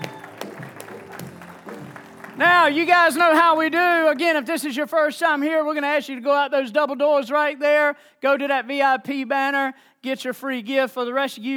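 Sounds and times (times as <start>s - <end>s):
crowd clapping in a large room: 0.0s - 5.0s
speech: 2.4s - 11.5s.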